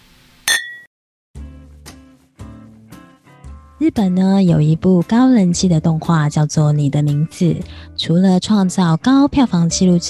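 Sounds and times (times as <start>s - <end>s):
glasses clinking in a toast: 0.5s - 0.9s
speech: 3.8s - 10.0s.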